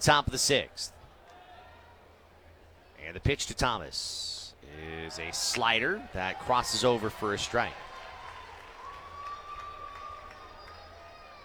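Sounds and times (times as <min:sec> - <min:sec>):
speech: 0:00.0 - 0:01.0, 0:03.0 - 0:07.9
baseball crowd applause: 0:05.0 - 0:11.4.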